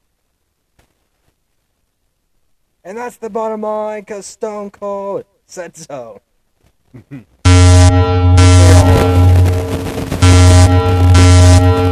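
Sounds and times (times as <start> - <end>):
speech: 2.8 - 6.3, 6.9 - 7.4
harsh heavily distorted alarm blaring: 7.5 - 11.8.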